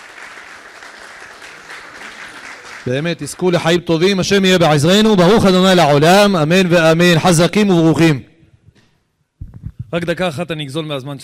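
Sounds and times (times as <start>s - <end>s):
audience applause for a rabbi: 0.0s - 3.6s
speech: 2.8s - 8.3s, 9.9s - 11.2s.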